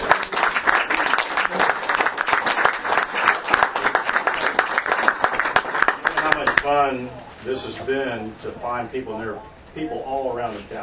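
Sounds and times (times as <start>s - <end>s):
applause: 0.0s - 6.7s
speech: 6.7s - 10.8s.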